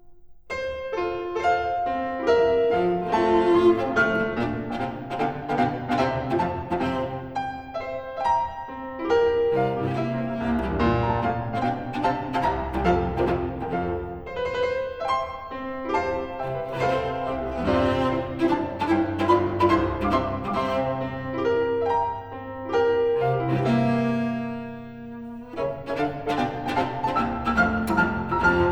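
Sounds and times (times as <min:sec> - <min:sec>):
piano: 0:00.0 - 0:28.7
cello: 0:00.9 - 0:28.7.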